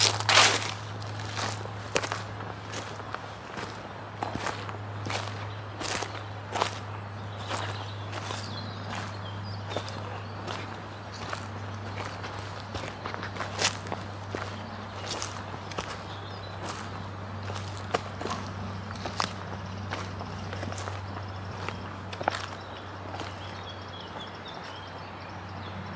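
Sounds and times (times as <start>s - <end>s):
waterside woodland ambience: 0.0s - 25.9s.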